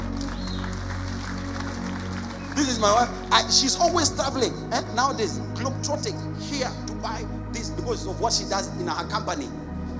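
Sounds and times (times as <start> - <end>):
crowd clapping: 0.0 - 3.8
speech: 2.6 - 9.6.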